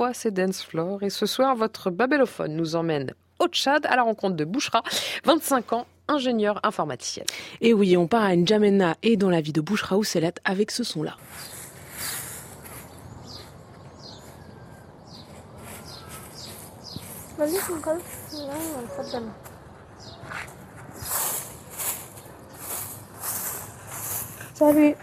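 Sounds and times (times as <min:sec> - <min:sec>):
speech: 0:00.0 - 0:11.6, 0:17.4 - 0:19.5, 0:24.6 - 0:25.0
birds chirping in a house courtyard in N'Djamena early morning: 0:09.8 - 0:25.0
broom sweeping a house courtyard in N'Djamena Chad: 0:11.2 - 0:14.5, 0:15.2 - 0:19.3, 0:20.2 - 0:25.0.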